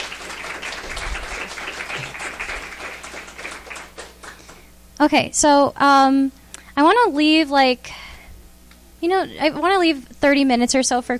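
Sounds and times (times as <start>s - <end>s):
audience round of applause: 0.0s - 4.6s
speech: 5.0s - 8.0s, 9.0s - 11.1s.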